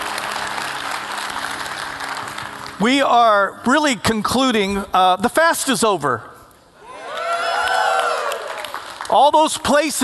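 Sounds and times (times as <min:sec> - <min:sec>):
applause: 0:00.0 - 0:03.0, 0:07.0 - 0:10.0
speech: 0:02.8 - 0:06.3, 0:09.1 - 0:10.0.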